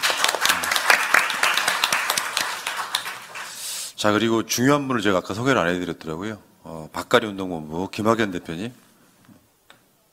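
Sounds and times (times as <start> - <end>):
audience applause: 0.0 - 3.6
speech: 4.0 - 8.8.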